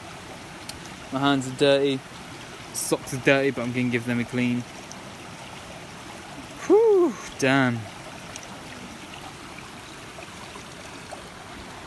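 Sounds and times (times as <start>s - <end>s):
flowing stream water: 0.0s - 11.8s
speech: 1.1s - 2.2s, 2.8s - 4.8s, 7.4s - 7.9s.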